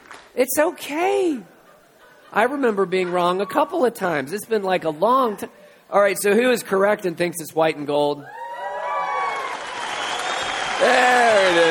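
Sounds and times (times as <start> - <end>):
speech: 0.4 - 1.5, 2.3 - 8.4, 10.8 - 11.6
audience cheering: 8.2 - 11.6.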